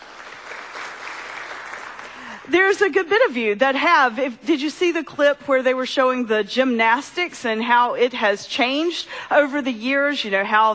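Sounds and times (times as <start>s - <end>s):
audience clapping: 0.0s - 2.5s
speech: 2.5s - 10.7s.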